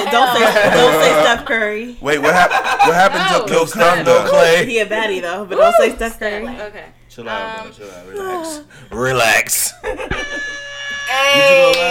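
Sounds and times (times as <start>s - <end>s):
laughter: 0.0s - 4.8s, 9.6s - 10.7s
speech: 0.1s - 11.8s
air horn blast: 10.0s - 11.8s.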